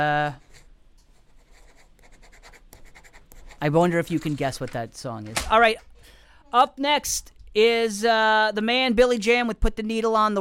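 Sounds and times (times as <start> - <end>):
speech: 0.0 - 0.4, 3.6 - 5.9, 6.5 - 10.4
pen scratching on paper writing down a grade: 1.3 - 3.6.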